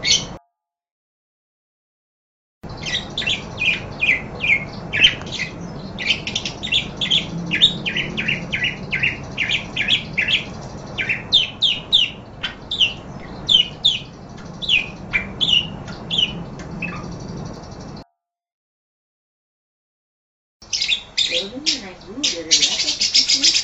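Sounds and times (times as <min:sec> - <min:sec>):
parakeet chattering with rapid raspy chirps: 0:00.0 - 0:00.4, 0:02.7 - 0:18.0, 0:20.6 - 0:23.6.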